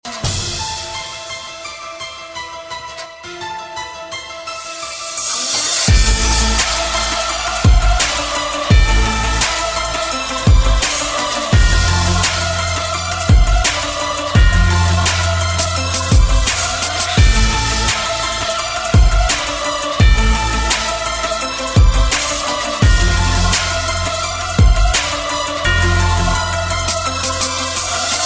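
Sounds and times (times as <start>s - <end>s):
scary beat ringtone: 5.9s - 28.2s.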